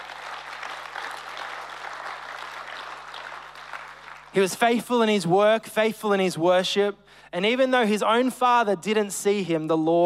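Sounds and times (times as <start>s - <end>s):
audience clapping: 0.0s - 4.8s
speech: 4.3s - 10.0s.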